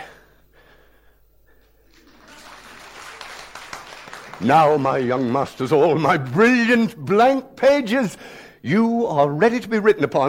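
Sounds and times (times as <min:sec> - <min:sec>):
audience applause: 0:01.9 - 0:06.1
speech: 0:04.4 - 0:10.2.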